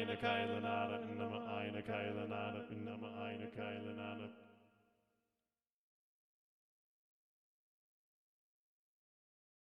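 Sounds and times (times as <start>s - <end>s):
SATB choir singing: 0.0s - 4.4s.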